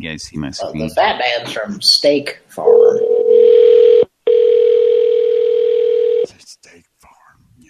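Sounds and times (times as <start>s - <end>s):
speech: 0.0s - 3.5s
electronic telephone tone on an outgoing call: 2.7s - 6.3s.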